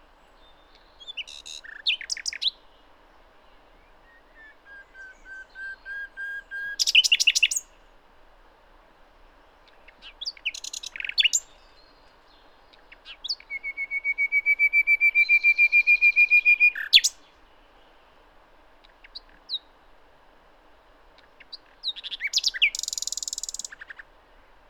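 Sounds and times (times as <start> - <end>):
common nightingale singing: 0.4 - 2.7, 3.8 - 7.8, 9.7 - 17.3, 21.4 - 24.0.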